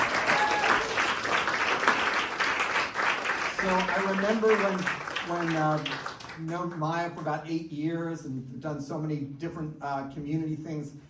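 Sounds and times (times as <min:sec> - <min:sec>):
audience round of applause: 0:00.0 - 0:06.6
speech: 0:03.6 - 0:11.0.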